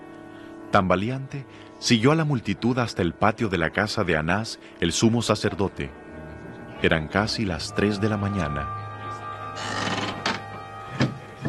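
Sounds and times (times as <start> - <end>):
low tone: 0.0 - 11.4
speech: 0.7 - 6.0, 6.8 - 8.8
wooden gate being shut in a courtyard of the high priest's house at night: 9.6 - 11.4.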